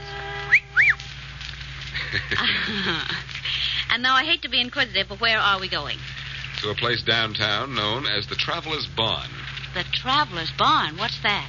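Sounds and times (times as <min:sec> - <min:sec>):
high whistle notes: 0:00.0 - 0:01.2
low steady hum: 0:00.0 - 0:11.4
laughter: 0:01.9 - 0:03.9
speech: 0:02.1 - 0:11.4.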